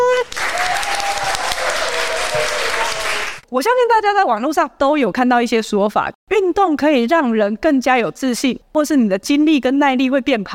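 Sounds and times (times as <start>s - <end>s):
applause: 0.0s - 3.4s
speech: 3.6s - 10.5s.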